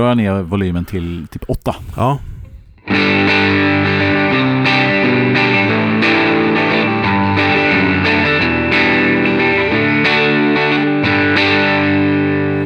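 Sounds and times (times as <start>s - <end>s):
speech: 0.0s - 2.3s, 2.9s - 3.3s
electric guitar on the neck pickup playing compressed chords: 2.8s - 12.6s.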